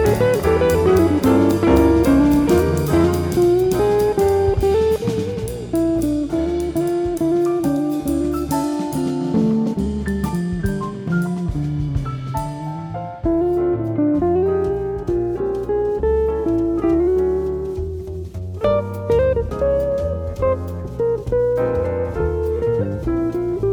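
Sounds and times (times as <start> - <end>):
jazz guitar: 0.0 - 23.7.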